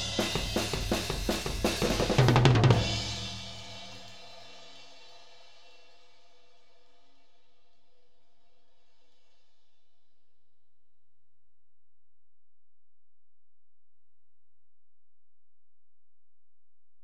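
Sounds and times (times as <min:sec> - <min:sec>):
tom drums: 0:00.0 - 0:04.5.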